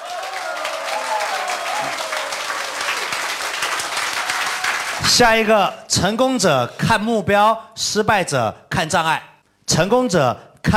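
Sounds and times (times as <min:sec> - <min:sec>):
audience applause: 0:00.0 - 0:05.1
speech: 0:05.0 - 0:10.7.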